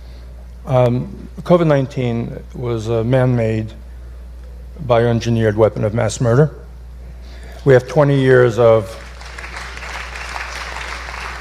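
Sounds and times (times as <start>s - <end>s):
low constant hum: 0.0s - 11.3s
speech: 0.6s - 3.8s, 4.8s - 6.6s, 7.6s - 9.0s
audience applauding: 8.9s - 11.3s.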